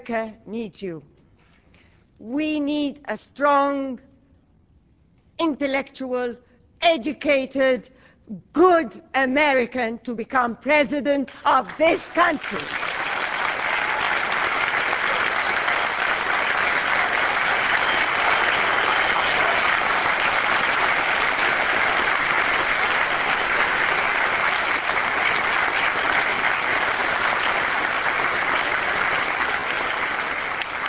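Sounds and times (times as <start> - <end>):
speech: 0.0 - 1.1, 2.2 - 4.1, 5.4 - 12.9
audience applause and clapping: 12.4 - 30.8.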